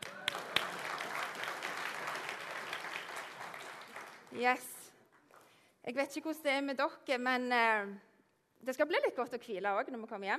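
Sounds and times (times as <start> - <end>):
audience applause: 0.0 - 4.5
speech: 4.3 - 4.8, 5.8 - 10.3.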